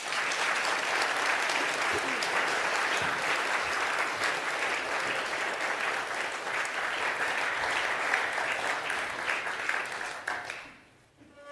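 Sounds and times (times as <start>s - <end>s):
audience applause: 0.0s - 10.9s.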